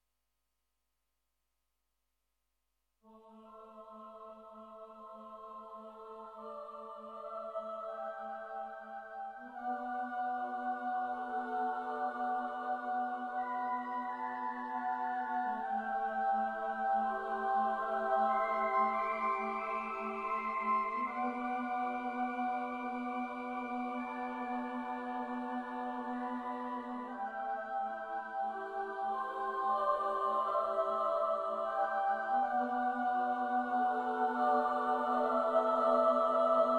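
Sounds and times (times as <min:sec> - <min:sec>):
choir singing: 0:03.1 - 0:36.7.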